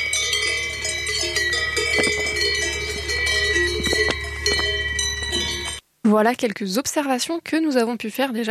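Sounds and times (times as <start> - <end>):
cowbells on grazing cows: 0.0 - 5.8
speech: 6.1 - 8.4.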